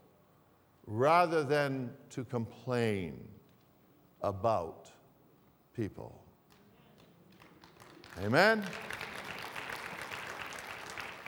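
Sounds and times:
speech: 0.9 - 3.4, 4.2 - 5.0, 5.8 - 6.2, 8.2 - 9.0
applause: 7.0 - 11.2.

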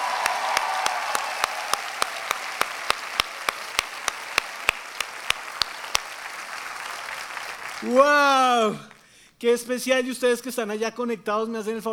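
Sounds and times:
audience applause: 0.0 - 9.0
speech: 7.8 - 11.9.

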